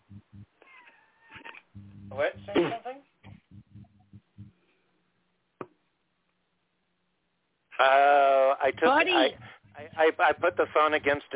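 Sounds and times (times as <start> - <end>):
faint low murmurs: 0.0 - 0.6, 1.8 - 4.6, 7.8 - 11.3
cat meowing: 0.6 - 1.6
speech: 2.1 - 3.1, 7.8 - 9.4, 10.0 - 11.3.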